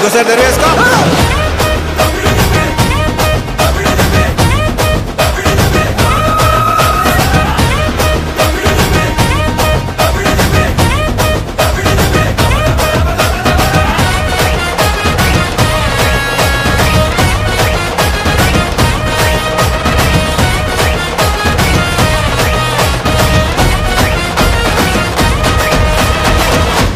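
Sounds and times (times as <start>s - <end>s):
background music theme ringtone: 0.2s - 26.8s.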